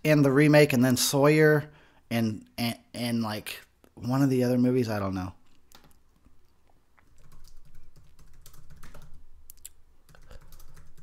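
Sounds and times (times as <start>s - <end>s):
speech: 0.0s - 5.4s
typing on a computer keyboard: 7.0s - 11.0s.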